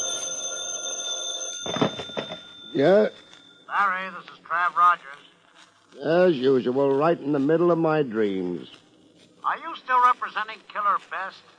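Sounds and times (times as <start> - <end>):
telephone ringing: 0.0 - 4.2
speech: 2.8 - 5.3, 6.0 - 8.8, 9.4 - 11.5.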